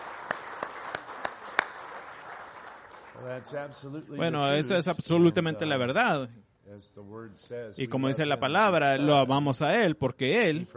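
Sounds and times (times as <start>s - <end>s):
audience applause: 0.0s - 3.8s
speech: 3.2s - 10.7s.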